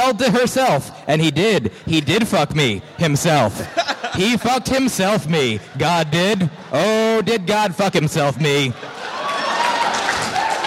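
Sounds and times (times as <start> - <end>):
speech: 0.1 - 8.9
laughter: 2.0 - 10.5
audience clapping: 8.9 - 10.6.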